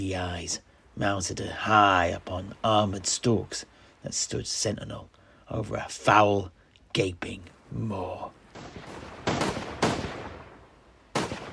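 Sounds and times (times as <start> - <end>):
speech: 0.0 - 8.9
low noise: 0.0 - 11.5
musket fire: 8.5 - 11.5.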